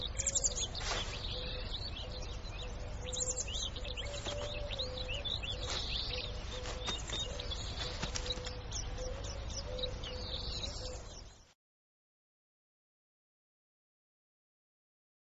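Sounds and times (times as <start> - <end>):
Iberian lynx calling with rough pulsed rasping bursts: 0.1 - 11.1.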